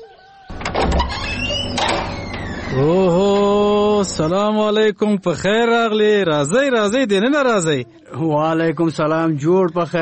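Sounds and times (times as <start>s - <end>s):
door swinging open with scraping rattle: 0.5s - 4.3s
squeaky tones: 0.5s - 4.3s
speech: 2.7s - 10.0s.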